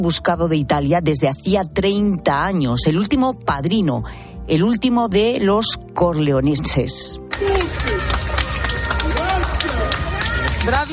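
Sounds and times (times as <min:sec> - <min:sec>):
speech: 0:00.0 - 0:07.8, 0:10.6 - 0:10.9
crowd applauding police officers: 0:07.3 - 0:10.9.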